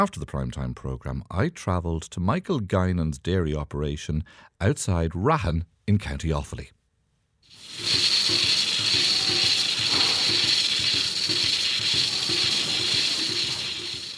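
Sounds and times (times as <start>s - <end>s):
speech: 0.0s - 6.8s
robotic milker working on Montbellard cows: 7.5s - 14.1s.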